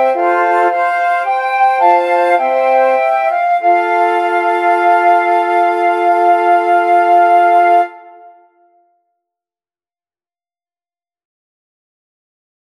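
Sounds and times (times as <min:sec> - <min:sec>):
flute quartet playing: 0:00.0 - 0:08.5.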